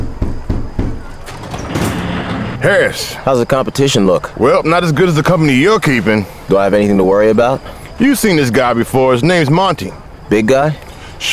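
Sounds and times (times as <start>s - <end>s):
knocking on a pea-green metal door in a garbage-strewn alley: 0.0s - 2.6s
speech: 2.6s - 11.3s.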